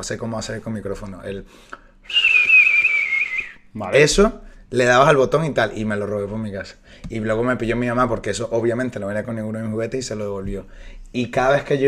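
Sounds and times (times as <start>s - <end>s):
speech: 0.0s - 2.4s, 3.7s - 11.8s
person whistling in imitation of a little bird: 2.0s - 3.7s.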